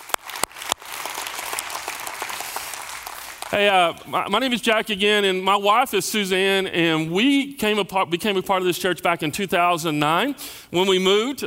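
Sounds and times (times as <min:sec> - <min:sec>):
church congregation in London clapping: 0:00.0 - 0:04.5
speech: 0:03.5 - 0:11.4.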